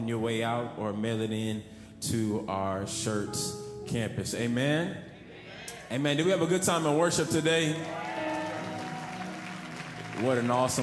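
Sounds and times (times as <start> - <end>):
speech: 0.0 - 5.1, 5.9 - 8.1, 10.2 - 10.8
audience applause: 7.8 - 10.8.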